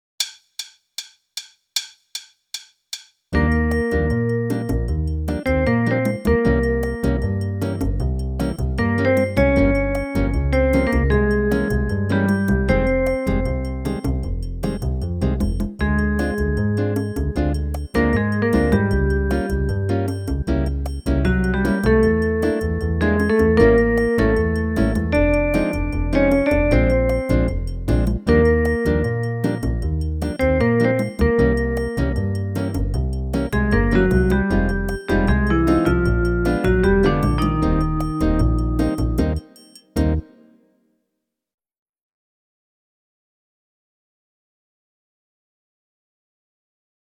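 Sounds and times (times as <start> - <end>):
bossa nova music: 3.4 - 40.3.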